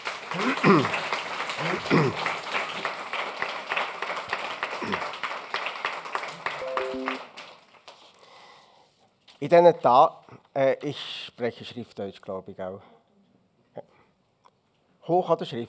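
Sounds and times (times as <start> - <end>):
applause: 0.0 - 8.4
speech: 0.3 - 2.4, 9.4 - 12.9, 15.1 - 15.6.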